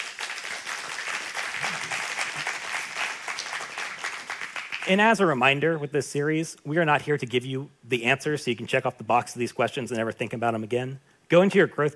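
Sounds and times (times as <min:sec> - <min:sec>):
audience applause: 0:00.0 - 0:05.0
speech: 0:04.9 - 0:11.9.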